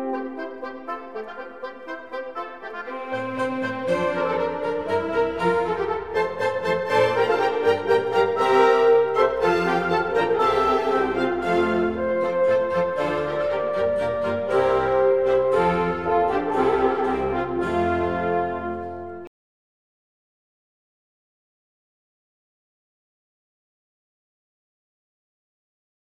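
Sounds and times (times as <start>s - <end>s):
baroque orchestra playing: 0.0s - 19.3s.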